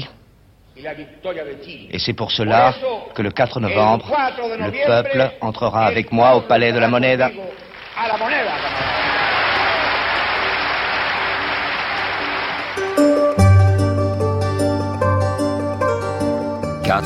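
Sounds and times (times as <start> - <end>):
speech: 0.8 - 8.9
jubilant crowd cheering and applauding: 7.6 - 13.5
music with sustained brassy tones: 9.2 - 17.0.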